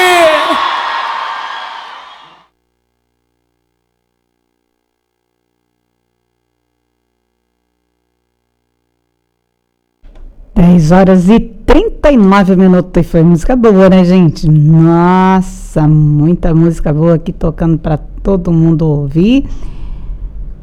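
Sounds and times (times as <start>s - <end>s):
applause: 0.0s - 2.5s
loud cheering shout: 0.0s - 2.5s
speech: 10.6s - 19.8s.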